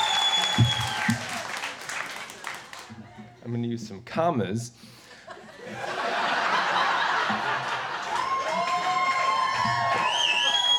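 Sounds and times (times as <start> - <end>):
audience clapping: 0.0 - 3.0, 7.4 - 10.7
speech: 3.5 - 5.0
laughter: 5.2 - 8.9.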